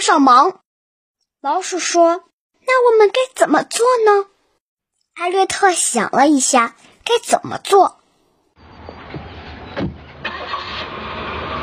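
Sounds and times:
speech: 0.0 - 0.6, 1.4 - 4.3, 5.2 - 8.0
car engine cranking, starting and running: 8.6 - 11.6.

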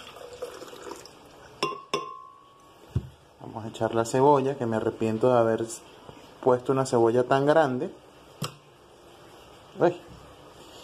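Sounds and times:
milk pouring into a blender: 0.0 - 1.5
speech: 3.6 - 8.0, 9.8 - 10.1.

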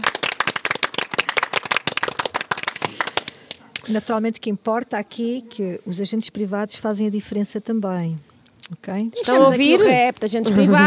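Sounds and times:
audience clapping: 0.0 - 4.0
speech: 3.9 - 10.8.

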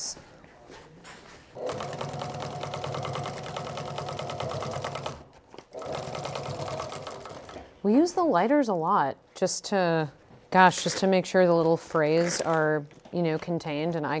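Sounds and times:
sewing machine binding bag edges: 1.6 - 7.7
speech: 7.8 - 14.1.

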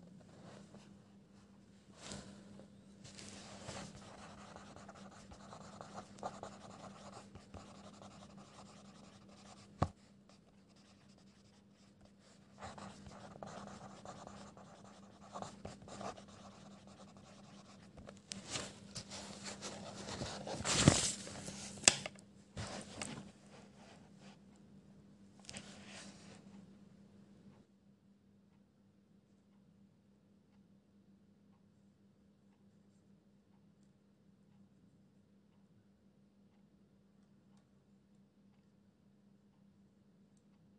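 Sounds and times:
low steady hum: 0.0 - 40.7
pencil scribbling: 3.7 - 9.9, 10.6 - 17.9.

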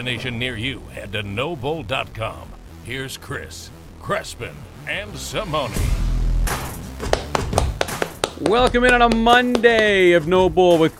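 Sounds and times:
speech: 0.0 - 6.0, 8.4 - 10.9
soft polite golf clap: 7.0 - 10.1.

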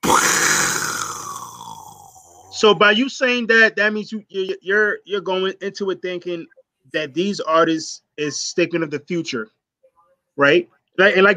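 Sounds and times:
voice imitating an explosion: 0.0 - 2.7
speech: 2.6 - 9.6, 10.4 - 11.3.

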